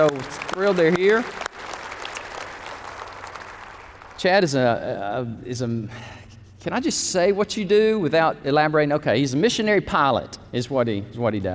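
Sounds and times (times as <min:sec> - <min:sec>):
speech: 0:00.0 - 0:01.4, 0:04.2 - 0:11.5
audience applauding welcoming guests: 0:00.0 - 0:04.2.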